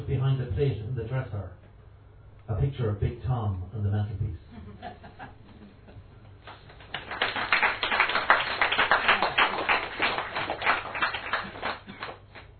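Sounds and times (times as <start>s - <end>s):
speech: 0.6s - 1.6s, 2.5s - 5.0s
laughter: 4.5s - 6.1s
audience applause: 6.4s - 12.5s.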